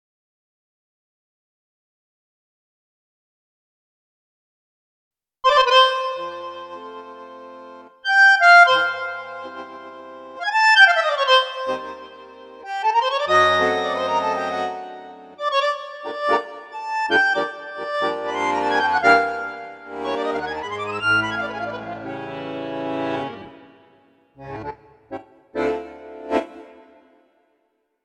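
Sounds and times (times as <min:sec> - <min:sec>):
bandoneon playing tango: 0:05.5 - 0:27.2
Roland V-Accordion: 0:05.5 - 0:27.4.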